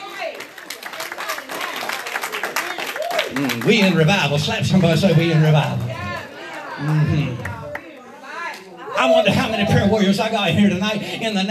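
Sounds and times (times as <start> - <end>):
audience clapping hands in praise: 0.0 - 8.0
voices shouting and cheering: 1.2 - 11.3
speech: 3.3 - 5.9, 6.8 - 7.5, 9.0 - 11.5.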